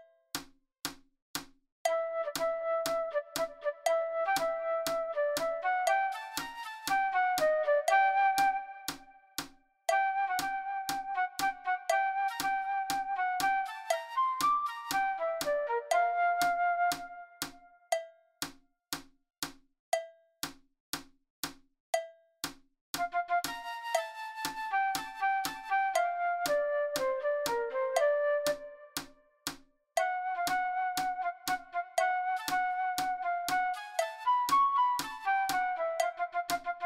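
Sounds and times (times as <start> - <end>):
fast flute playing: 1.9 - 9.3, 9.9 - 17.6, 23.0 - 29.0, 30.0 - 36.8.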